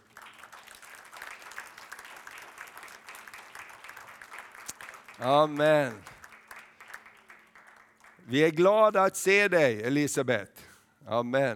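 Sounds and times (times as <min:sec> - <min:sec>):
audience applause: 0:00.0 - 0:08.8
speech: 0:05.2 - 0:06.1, 0:08.3 - 0:11.5.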